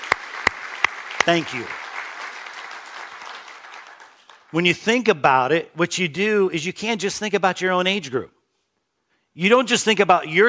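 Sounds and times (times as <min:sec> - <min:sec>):
audience applause: 0:00.0 - 0:04.6
speech: 0:01.3 - 0:01.8, 0:04.5 - 0:08.4, 0:09.4 - 0:10.4.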